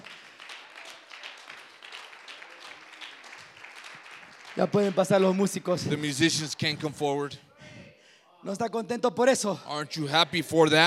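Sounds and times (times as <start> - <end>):
audience applauding: 0.0 - 7.1
speech: 4.6 - 7.5, 8.4 - 10.8.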